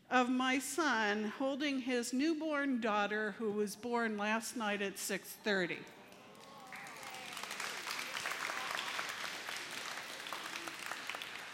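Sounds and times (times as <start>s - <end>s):
speech: 0.1s - 6.0s
audience clapping: 5.9s - 11.5s.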